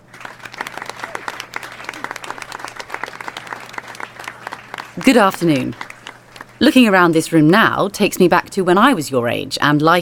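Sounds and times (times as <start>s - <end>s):
applause: 0.0s - 6.7s
speech: 5.0s - 5.9s, 6.6s - 10.0s.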